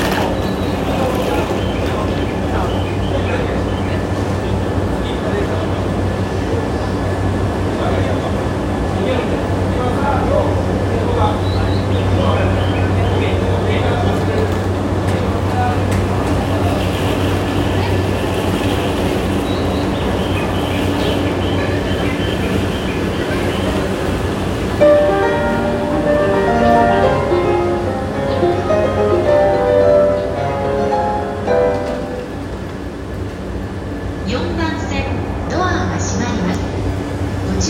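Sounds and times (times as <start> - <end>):
JR Yamanote Line train sounds in Tokyo: 0.0 - 37.6.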